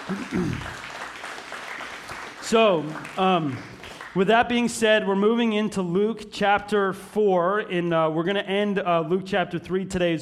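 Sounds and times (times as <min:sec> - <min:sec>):
audience applause: 0:00.0 - 0:04.2
speech: 0:00.1 - 0:00.8, 0:02.5 - 0:10.2.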